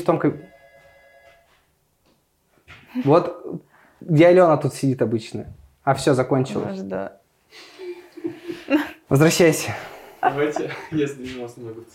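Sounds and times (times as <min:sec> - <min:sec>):
speech: 0:00.0 - 0:00.6, 0:03.0 - 0:07.7, 0:08.7 - 0:11.9
desk telephone ringing: 0:00.0 - 0:01.6
laughter: 0:07.8 - 0:09.0, 0:10.2 - 0:11.2.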